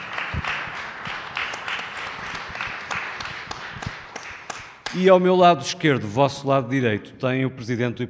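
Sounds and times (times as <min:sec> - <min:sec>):
audience applause: 0:00.0 - 0:05.0
speech: 0:04.9 - 0:08.0.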